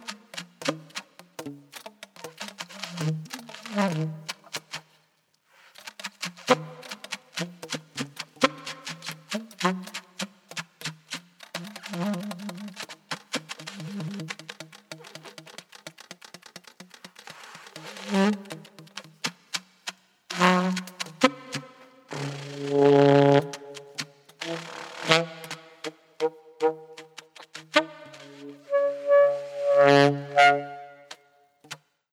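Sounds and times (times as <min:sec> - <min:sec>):
saxophone: 0:02.2 - 0:04.4, 0:06.4 - 0:10.3, 0:11.5 - 0:15.6, 0:17.2 - 0:19.0, 0:20.3 - 0:31.3.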